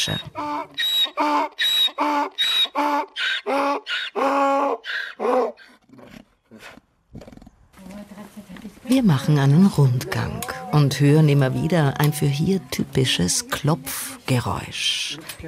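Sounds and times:
speech: 0.0s - 3.6s, 8.9s - 15.4s
donkey braying in a village: 0.0s - 6.8s.

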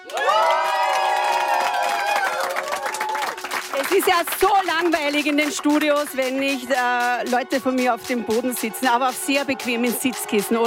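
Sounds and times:
live audience cheering with whoops and shouts: 0.0s - 3.5s, 9.0s - 10.6s
live audience clapping: 0.0s - 10.6s
speech: 4.0s - 10.6s.

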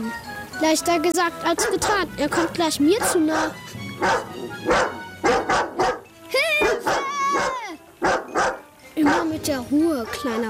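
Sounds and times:
speech: 0.0s - 5.7s, 9.3s - 10.4s
dog barking: 1.6s - 9.4s, 10.0s - 10.4s.

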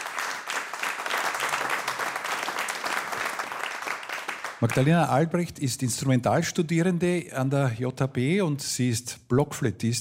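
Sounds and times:
audience applause: 0.0s - 5.0s
speech: 4.6s - 9.9s.

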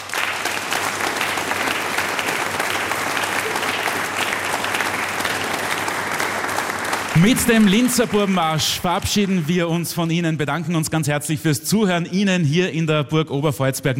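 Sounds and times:
audience applause: 0.0s - 10.0s
speech: 7.2s - 13.9s.

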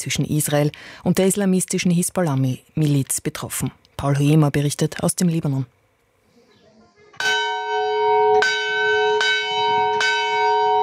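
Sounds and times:
speech: 0.0s - 5.8s
monastery church bells ringing: 7.2s - 10.8s.

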